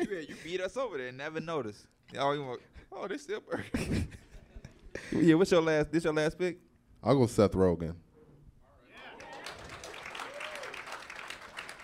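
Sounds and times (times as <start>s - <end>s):
speech: 0.1s - 4.2s, 5.0s - 8.0s
golf clap: 9.2s - 11.8s.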